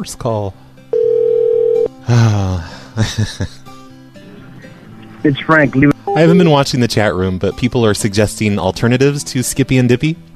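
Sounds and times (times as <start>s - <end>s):
speech: 0.0s - 0.6s, 2.1s - 3.6s, 5.2s - 10.3s
telephone dial tone when calling back: 0.9s - 1.9s
laughter: 2.2s - 5.3s.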